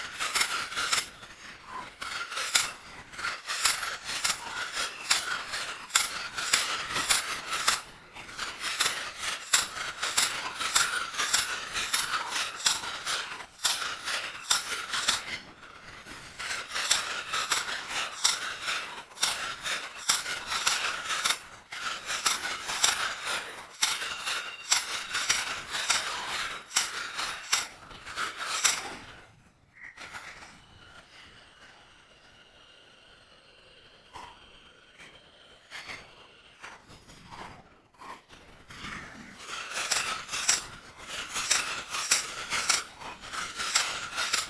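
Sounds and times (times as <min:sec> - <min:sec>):
typewriter: 0:00.0 - 0:29.0, 0:39.4 - 0:44.4.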